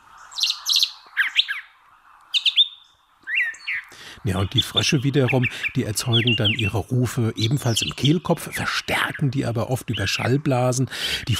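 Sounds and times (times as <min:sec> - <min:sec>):
songbird singing two tones simultaneously: 0:00.2 - 0:10.3
speech: 0:04.2 - 0:11.3.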